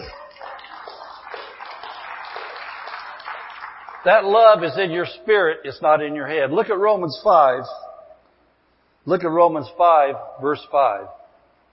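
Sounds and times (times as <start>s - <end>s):
audience clapping: 0.0s - 4.9s
speech: 4.0s - 7.8s, 9.0s - 11.2s.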